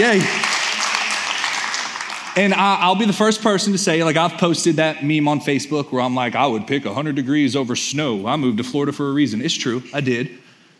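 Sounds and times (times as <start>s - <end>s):
speech: 0.0s - 0.4s, 2.4s - 10.4s
audience clapping: 0.0s - 3.2s.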